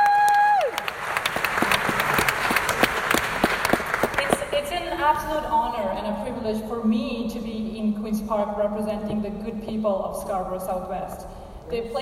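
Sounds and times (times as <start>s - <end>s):
audience applause: 0.0s - 4.6s
speech: 5.1s - 11.9s.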